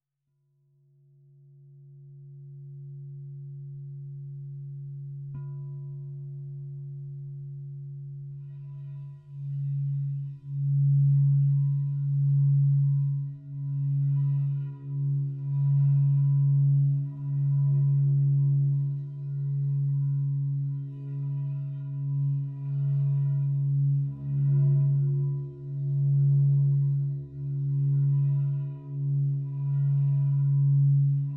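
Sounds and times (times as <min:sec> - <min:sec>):
crystal singing bowl: 0:01.2 - 0:31.3.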